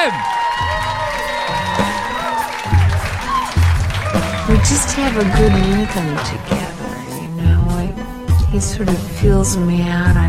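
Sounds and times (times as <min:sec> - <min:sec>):
audience applause: 0:00.0 - 0:07.1
speech: 0:04.5 - 0:06.7, 0:08.5 - 0:10.2.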